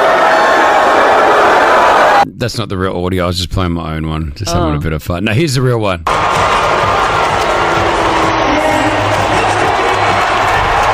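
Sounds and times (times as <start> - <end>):
crowd booing: 0.0 - 2.2, 6.1 - 10.9
speech: 2.4 - 6.5.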